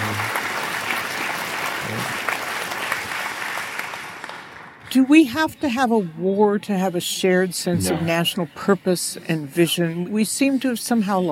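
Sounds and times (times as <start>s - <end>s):
audience applause: 0.0s - 4.8s
speech: 4.9s - 11.3s.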